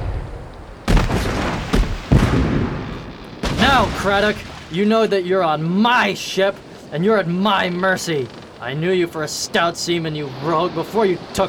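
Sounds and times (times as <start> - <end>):
cannon fire: 0.0 - 4.8
speech: 3.8 - 11.4.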